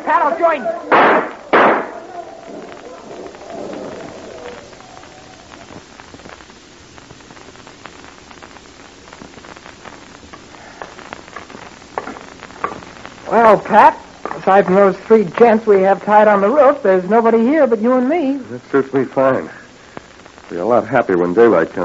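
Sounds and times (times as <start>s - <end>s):
speech: 0.1s - 1.4s, 13.3s - 19.6s, 20.5s - 21.8s
gunshots fired as parting shots: 0.8s - 4.6s.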